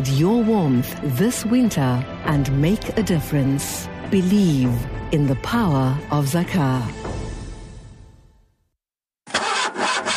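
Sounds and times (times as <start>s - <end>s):
speech: 0.0s - 7.0s
old car engine struggling to start: 9.3s - 10.1s.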